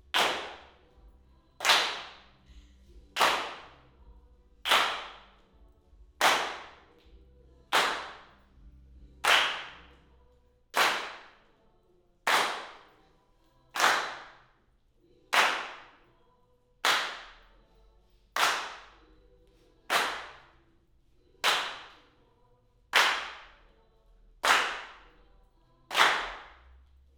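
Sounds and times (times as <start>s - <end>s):
hand claps in left channel: 0.0s - 0.9s, 1.6s - 3.9s, 4.6s - 5.4s, 6.2s - 7.1s, 7.7s - 8.4s, 9.2s - 10.0s, 10.8s - 11.5s, 12.3s - 13.0s, 13.8s - 14.4s, 15.3s - 16.0s, 16.8s - 17.4s, 18.4s - 19.0s, 19.9s - 20.6s, 21.4s - 22.1s, 22.9s - 23.6s, 24.4s - 25.1s, 25.9s - 26.7s.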